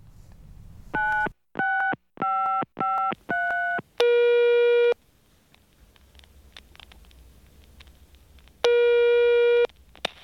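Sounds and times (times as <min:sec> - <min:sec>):
telephone tones while placing a call: 0:01.0 - 0:05.0, 0:08.7 - 0:09.7.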